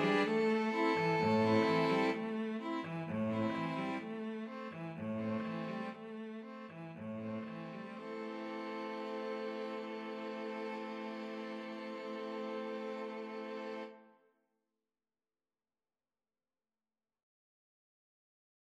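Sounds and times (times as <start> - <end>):
string quartet playing Chanukah music: 0.0 - 14.0.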